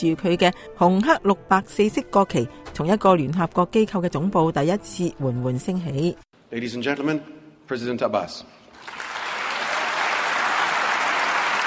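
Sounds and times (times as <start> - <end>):
speech: 0.0 - 9.1
crowd applause welcoming a speaker: 8.8 - 11.6.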